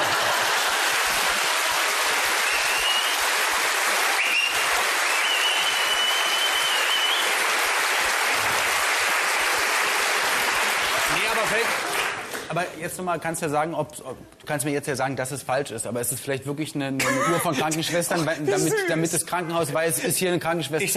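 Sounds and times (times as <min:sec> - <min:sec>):
laughter: 0:00.0 - 0:01.7, 0:17.0 - 0:20.9
audience clapping: 0:00.0 - 0:12.7
speech: 0:12.6 - 0:20.9.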